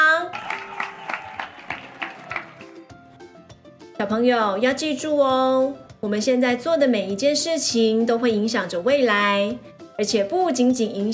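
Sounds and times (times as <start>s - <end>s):
children clapping: 0.3s - 2.8s
speech: 4.0s - 11.1s.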